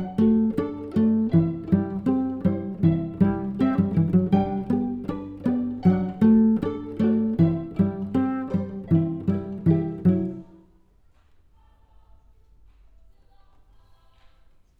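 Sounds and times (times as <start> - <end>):
cello: 0.0 - 10.6.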